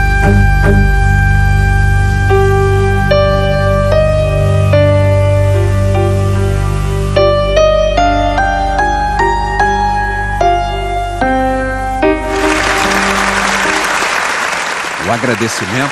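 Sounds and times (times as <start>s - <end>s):
orchestral music: 0.2s - 1.2s, 2.3s - 14.9s
audience applause: 12.2s - 15.9s
speech: 15.2s - 15.9s.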